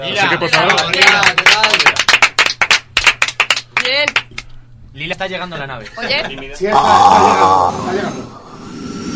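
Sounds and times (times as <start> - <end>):
speech: 0.0 - 2.0, 5.0 - 8.4
audience clapping: 0.4 - 4.5.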